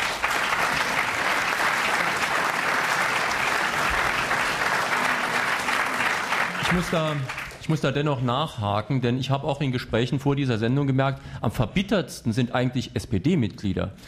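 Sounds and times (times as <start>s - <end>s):
applause: 0.0s - 7.9s
speech: 6.7s - 14.0s.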